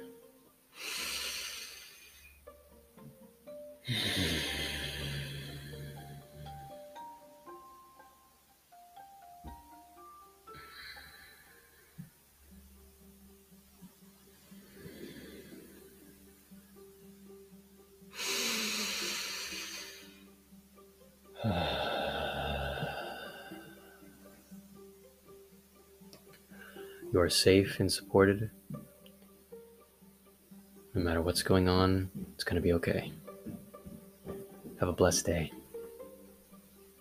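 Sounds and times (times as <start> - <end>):
soft sustained tones: 0.0 - 36.9
deep slow breathing during a calming relaxation exercise: 0.7 - 2.4, 3.9 - 6.8, 10.5 - 12.2, 14.4 - 16.3, 21.4 - 24.1
speech: 3.9 - 4.6, 27.2 - 28.6, 31.2 - 33.2, 34.8 - 35.6.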